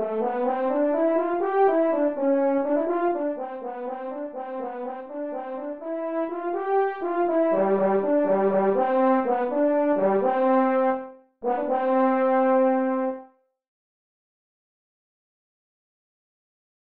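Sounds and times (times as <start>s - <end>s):
horn: 0.0s - 13.4s.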